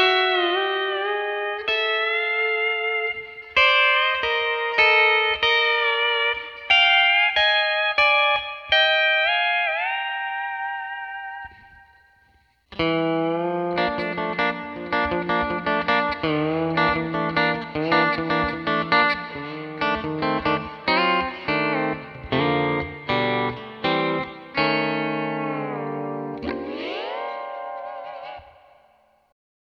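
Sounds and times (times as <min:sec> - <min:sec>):
D13 steel guitar with 4.0 second plate reverb: 0:00.0 - 0:29.3.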